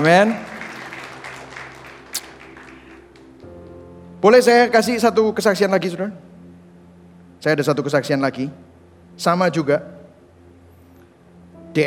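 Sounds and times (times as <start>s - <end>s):
speech: 0.0s - 0.5s, 4.2s - 6.2s, 7.4s - 10.0s
audience applause: 0.0s - 3.0s.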